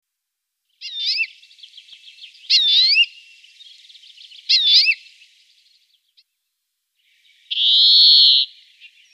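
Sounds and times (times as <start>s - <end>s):
European greenfinch song with rapid trilled notes: 0.7s - 6.3s, 7.0s - 9.1s.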